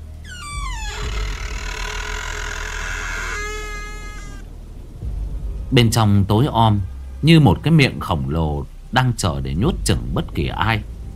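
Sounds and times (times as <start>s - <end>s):
heavy door creaking slowly open: 0.0s - 4.5s
speech: 5.7s - 10.9s.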